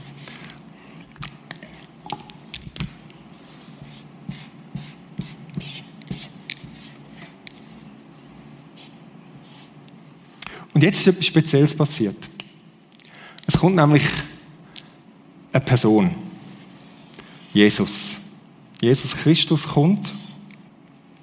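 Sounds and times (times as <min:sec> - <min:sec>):
pen or marker drawing a temple by hand on paper: 0:03.4 - 0:09.7
speech: 0:10.8 - 0:12.3, 0:13.6 - 0:14.3, 0:15.6 - 0:16.3, 0:17.6 - 0:18.2, 0:18.8 - 0:20.2.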